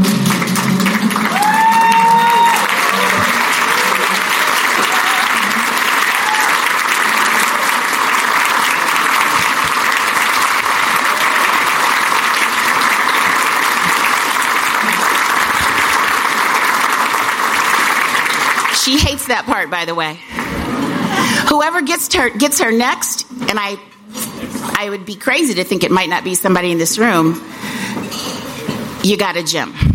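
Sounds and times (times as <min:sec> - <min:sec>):
large audience standing ovation: 0:00.0 - 0:19.2
whoop: 0:01.2 - 0:06.8
speech: 0:19.3 - 0:20.4, 0:21.6 - 0:27.9, 0:29.0 - 0:29.8.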